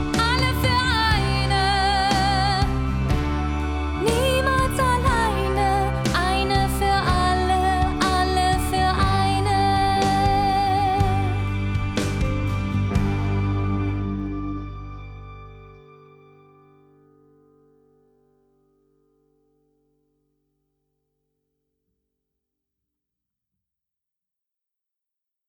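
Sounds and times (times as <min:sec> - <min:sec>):
princess song: 0:00.0 - 0:15.8.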